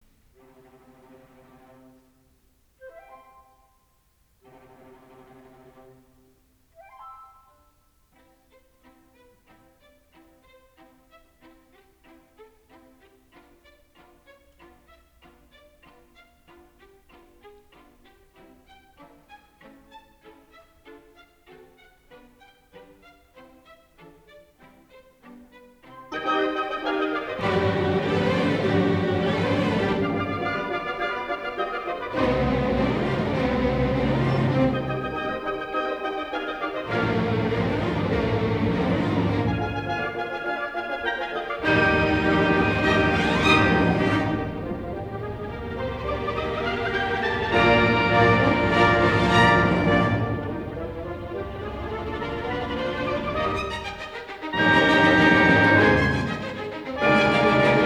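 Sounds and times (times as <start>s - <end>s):
orchestra playing: 25.8s - 57.8s
thunderstorm: 42.8s - 54.0s.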